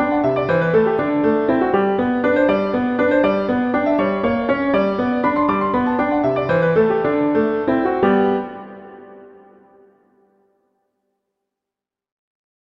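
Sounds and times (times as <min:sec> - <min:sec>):
waltz music: 0:00.0 - 0:10.0.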